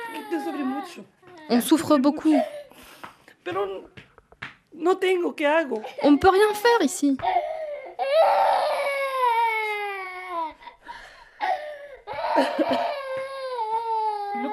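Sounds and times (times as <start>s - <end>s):
woman crying: 0.0s - 2.7s, 5.9s - 10.8s, 11.4s - 14.5s
speech: 0.2s - 2.6s, 3.4s - 4.0s, 4.7s - 7.5s.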